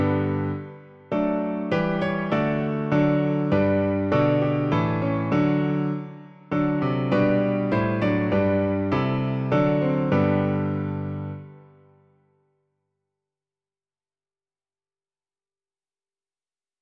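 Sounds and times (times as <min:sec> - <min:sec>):
piano: 0:00.0 - 0:12.6.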